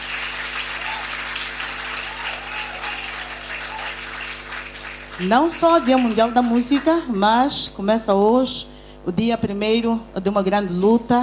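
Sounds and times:
audience applause for the musicians: 0.0s - 7.1s
speech: 5.2s - 11.2s.

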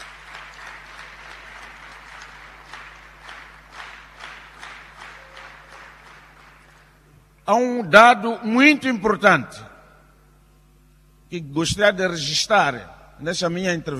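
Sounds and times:
audience applause: 0.0s - 7.1s
speech: 7.5s - 9.7s, 11.3s - 13.9s.

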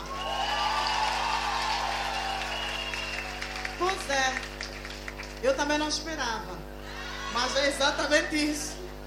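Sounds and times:
audience applause: 0.1s - 5.4s
speech: 3.9s - 4.6s, 5.4s - 6.7s, 7.3s - 8.9s.

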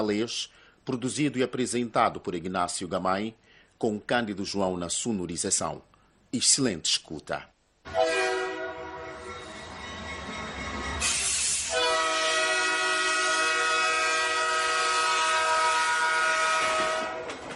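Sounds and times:
speech: 0.0s - 8.1s
locomotive horn on the Sena railway line in Mozambique: 7.9s - 9.5s, 11.0s - 17.4s
train rumbling on the Sena railway line: 7.9s - 17.5s.

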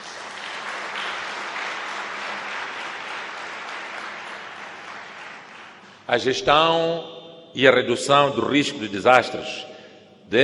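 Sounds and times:
audience applause: 0.0s - 6.0s
speech: 6.1s - 9.7s, 10.3s - 10.4s.

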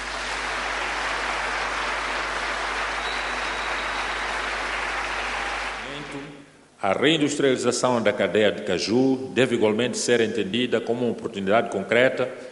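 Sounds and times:
audience applause: 0.0s - 6.3s
speech: 6.8s - 12.4s.

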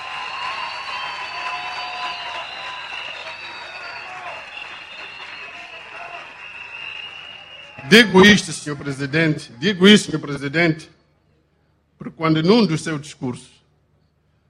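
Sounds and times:
audience applause: 0.0s - 8.4s
speech: 7.8s - 11.0s, 12.2s - 13.6s.

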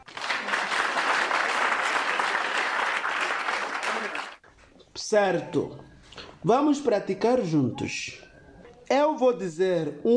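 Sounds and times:
children clapping: 0.0s - 4.4s
speech: 5.1s - 8.2s, 8.9s - 10.1s.

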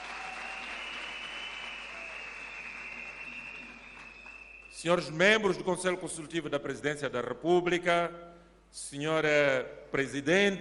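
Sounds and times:
applause: 0.0s - 5.1s
speech: 4.8s - 10.5s.

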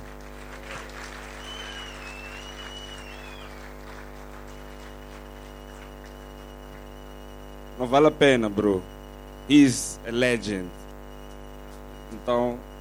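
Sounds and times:
audience applause: 0.0s - 6.3s
speech: 7.8s - 8.9s, 9.5s - 10.8s, 12.1s - 12.7s.

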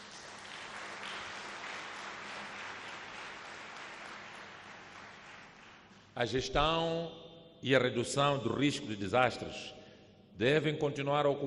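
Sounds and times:
crowd applauding: 0.0s - 6.2s
speech: 6.2s - 9.8s, 10.4s - 11.4s.

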